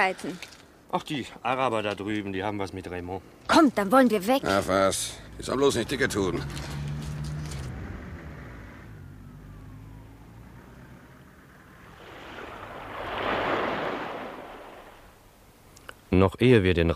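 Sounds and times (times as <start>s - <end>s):
speech: 0.0s - 6.8s, 16.1s - 16.9s
low engine hum drifting up through calm air: 4.6s - 15.3s
sea wave washing: 11.6s - 15.4s
sea surf rushing below the edge of a plateau: 11.7s - 15.3s.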